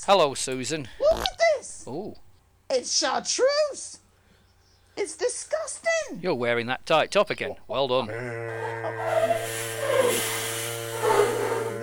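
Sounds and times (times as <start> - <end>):
speech: 0.0 - 4.0, 5.0 - 10.4
person humming: 8.1 - 11.8.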